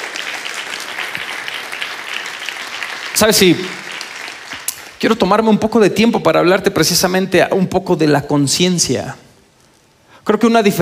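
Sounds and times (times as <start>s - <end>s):
group clapping at a prayer gathering: 0.0s - 5.0s
speech: 3.2s - 3.8s, 5.0s - 9.2s, 10.3s - 10.8s.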